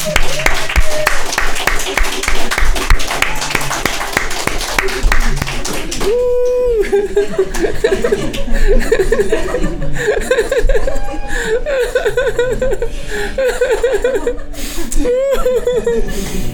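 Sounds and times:
hand clapping: 0:00.0 - 0:06.6, 0:07.4 - 0:08.5
laughter: 0:04.6 - 0:16.5.

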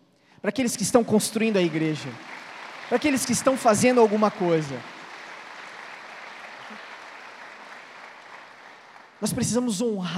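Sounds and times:
speech: 0:00.4 - 0:05.0, 0:09.2 - 0:10.1
church audience applause: 0:01.2 - 0:09.3.

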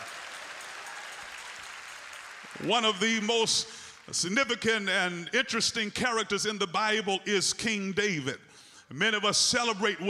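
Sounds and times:
audience clapping hands: 0:00.0 - 0:04.9
speech: 0:02.5 - 0:10.0.

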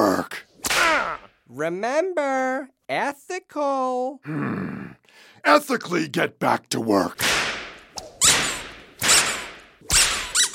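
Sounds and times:
whip cracks: 0:00.6 - 0:01.3, 0:07.2 - 0:10.2
speech: 0:01.5 - 0:07.4.

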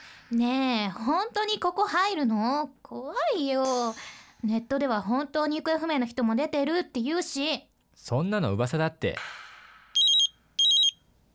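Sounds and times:
speech: 0:00.3 - 0:09.4
phone ringing from an unknown number: 0:10.0 - 0:11.0.

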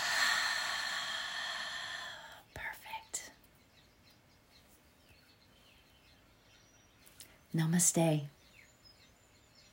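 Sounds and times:
deep breath in and out during a yoga session: 0:00.0 - 0:02.5
speech: 0:07.6 - 0:08.4.

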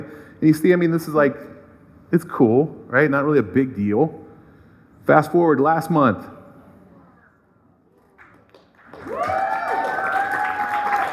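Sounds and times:
speech: 0:00.4 - 0:04.2, 0:05.0 - 0:06.4
audience clapping: 0:08.0 - 0:11.1.

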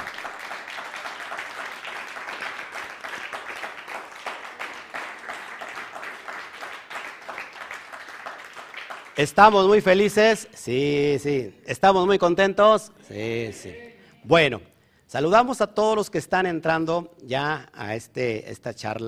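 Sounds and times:
audience applause: 0:00.0 - 0:10.3
speech: 0:09.2 - 0:19.0.

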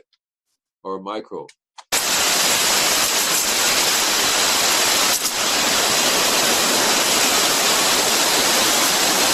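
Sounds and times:
speech: 0:00.8 - 0:01.6
high-pressure arborist sprayer spraying: 0:01.9 - 0:09.3.

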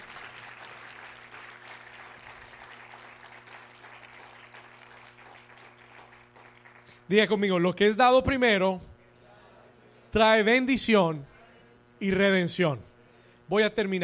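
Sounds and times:
audience applause: 0:00.0 - 0:06.9
low steady hum: 0:00.0 - 0:14.0
speech: 0:07.1 - 0:08.9, 0:10.1 - 0:11.3, 0:12.0 - 0:12.9, 0:13.5 - 0:14.0.

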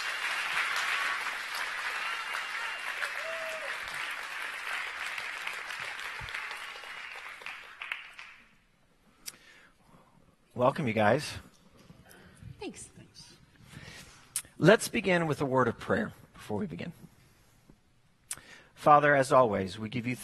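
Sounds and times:
audience applause: 0:00.0 - 0:08.5
speech: 0:10.6 - 0:11.5, 0:14.6 - 0:17.0, 0:18.8 - 0:20.2.

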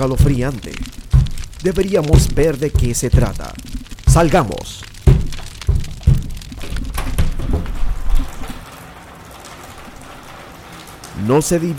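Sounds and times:
speech: 0:00.0 - 0:01.0, 0:01.6 - 0:04.9, 0:11.2 - 0:11.7
heavy footsteps thudding across a roof: 0:00.0 - 0:04.4, 0:05.0 - 0:08.6.

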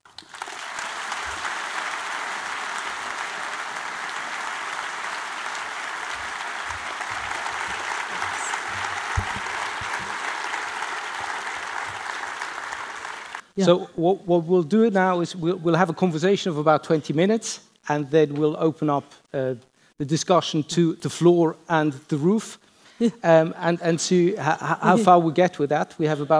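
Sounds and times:
audience applause: 0:00.2 - 0:13.5
laughter: 0:01.2 - 0:13.0, 0:24.6 - 0:25.1
speech: 0:13.6 - 0:26.3.

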